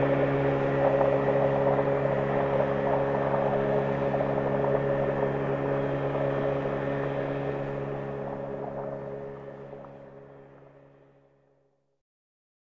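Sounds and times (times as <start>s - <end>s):
motorboat engine starting: 0.0s - 11.1s.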